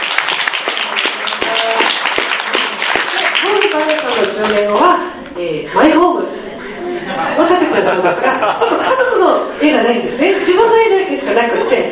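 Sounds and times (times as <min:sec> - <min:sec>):
steady audience applause: 0:00.0 - 0:04.7
speech: 0:03.8 - 0:06.4, 0:07.0 - 0:11.9
laughter: 0:06.3 - 0:09.6.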